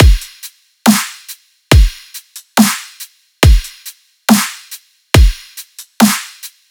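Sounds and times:
riddim drum loop: 0.0s - 1.1s, 1.7s - 2.8s, 3.4s - 4.5s, 5.2s - 6.2s.

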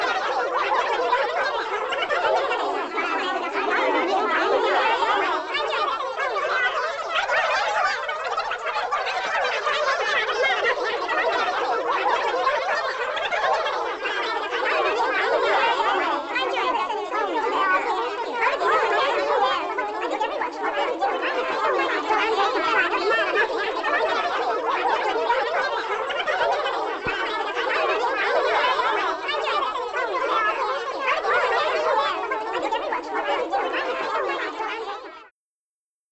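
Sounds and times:
high-pitched crowd walla in vintage cartoon comedy vocals: 0.0s - 35.3s.

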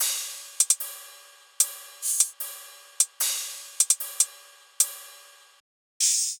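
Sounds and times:
drum loop: 0.0s - 0.9s, 1.6s - 2.4s, 3.0s - 5.0s.

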